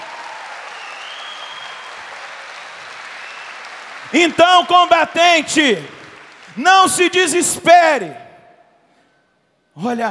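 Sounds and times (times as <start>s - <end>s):
crowd applause: 0.0s - 7.5s
speech: 4.1s - 6.0s, 6.6s - 8.2s, 9.8s - 10.1s.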